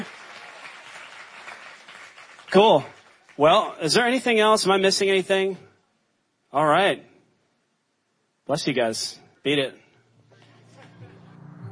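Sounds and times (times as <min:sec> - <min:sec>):
audience applause: 0:00.0 - 0:03.6
speech: 0:02.5 - 0:05.7, 0:06.5 - 0:07.1, 0:08.5 - 0:09.8.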